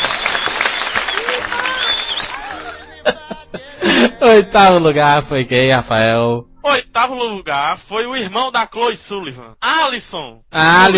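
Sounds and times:
audience applause: 0:00.0 - 0:04.1
people chuckling: 0:00.0 - 0:04.9
speech: 0:04.3 - 0:10.9.

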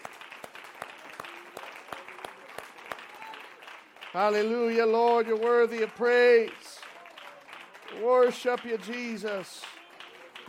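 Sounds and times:
audience hand clapping: 0:00.0 - 0:10.4
speech: 0:04.1 - 0:06.7, 0:08.0 - 0:09.7.

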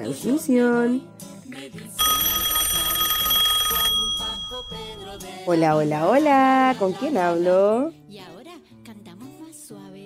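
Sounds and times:
speech: 0:00.0 - 0:02.4, 0:05.1 - 0:08.4
faint music: 0:00.0 - 0:10.0
telephone ringing for incoming call: 0:02.0 - 0:05.6.

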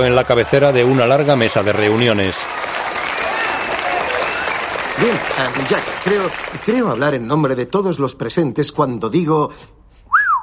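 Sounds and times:
speech: 0:00.0 - 0:02.7, 0:05.0 - 0:09.8
crowd applauding: 0:00.0 - 0:07.2.

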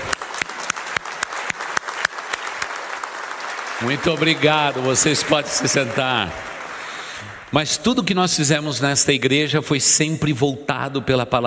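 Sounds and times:
audience applause: 0:00.0 - 0:08.1
speech: 0:03.8 - 0:06.5, 0:07.5 - 0:11.4.

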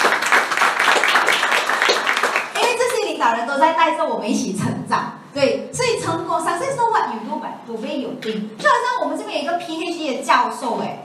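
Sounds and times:
crowd applause: 0:00.0 - 0:02.6
speech: 0:03.2 - 0:11.0.

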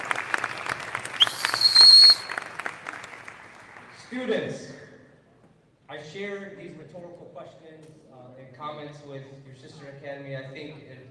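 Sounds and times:
audience applause: 0:00.0 - 0:04.1
shrill whistle: 0:01.1 - 0:02.5
speech: 0:04.1 - 0:04.8, 0:06.0 - 0:11.0.

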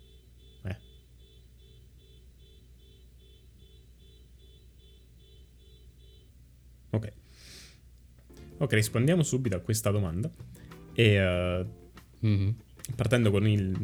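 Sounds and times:
car alarm going off: 0:00.0 - 0:06.5
speech: 0:07.0 - 0:07.5, 0:08.6 - 0:13.8.

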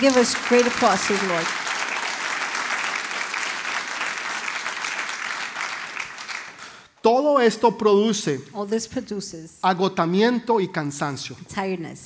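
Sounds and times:
speech: 0:00.0 - 0:01.7, 0:07.1 - 0:12.0
audience applause: 0:00.0 - 0:06.8.

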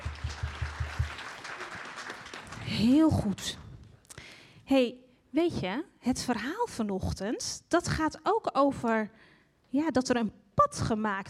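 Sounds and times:
audience applause: 0:00.0 - 0:03.1
speech: 0:02.7 - 0:03.6, 0:04.7 - 0:11.2.

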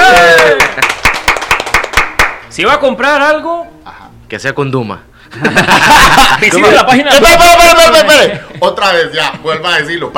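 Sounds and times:
clapping: 0:00.0 - 0:02.5
speech: 0:02.6 - 0:10.1
laughter: 0:05.3 - 0:09.8.

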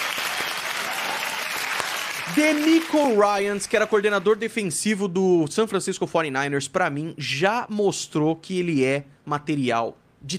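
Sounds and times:
applause sound effect: 0:00.0 - 0:04.5
speech: 0:02.3 - 0:10.3.

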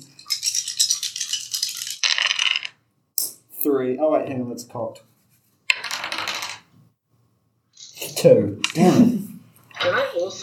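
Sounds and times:
dice rolling: 0:00.3 - 0:02.8, 0:05.7 - 0:06.7, 0:08.6 - 0:09.1
speech: 0:03.6 - 0:05.1, 0:08.2 - 0:10.4.

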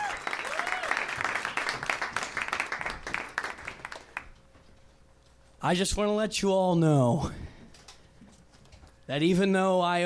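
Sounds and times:
audience applause: 0:00.0 - 0:04.3
speech: 0:05.6 - 0:07.4, 0:09.1 - 0:10.0.

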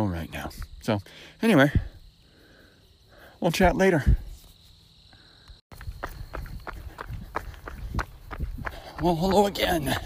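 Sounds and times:
speech: 0:00.0 - 0:01.9, 0:03.4 - 0:04.2, 0:09.0 - 0:10.0
running footsteps of a runner on a long run: 0:05.7 - 0:10.0.

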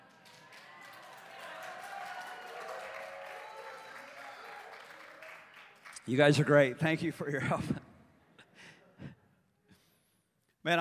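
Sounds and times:
audience applauding in praise: 0:00.0 - 0:06.6
speech: 0:06.1 - 0:07.8.

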